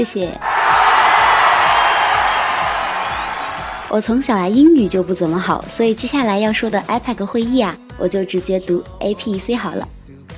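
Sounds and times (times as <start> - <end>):
speech: 0.0 - 0.5, 3.9 - 10.0
applause: 0.4 - 4.0
cheering: 0.4 - 4.2.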